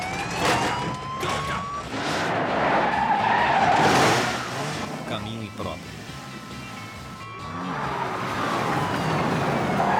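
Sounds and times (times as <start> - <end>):
car tires squealing in a high-speed handbrake turn: 0.0 - 5.2, 7.4 - 9.9
car engine and road noise: 0.0 - 9.9.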